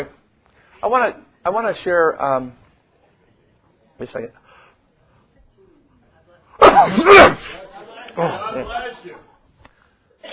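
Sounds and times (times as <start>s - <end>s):
quiet murmured talking: 0.0s - 10.3s
speech: 0.8s - 2.6s, 4.0s - 4.4s, 6.8s - 7.6s, 8.2s - 9.3s
person sneezing: 6.6s - 7.6s.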